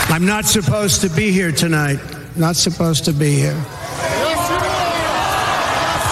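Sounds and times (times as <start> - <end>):
speech: 0.2 - 3.8
crowd chanting: 3.8 - 6.1.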